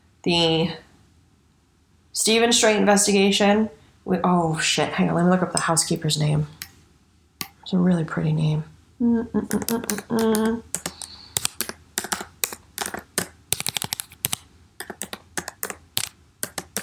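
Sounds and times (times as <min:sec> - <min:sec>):
speech: 0:00.2 - 0:00.8, 0:02.2 - 0:06.7, 0:07.7 - 0:10.8
typing on a computer keyboard with long nails: 0:09.5 - 0:16.8.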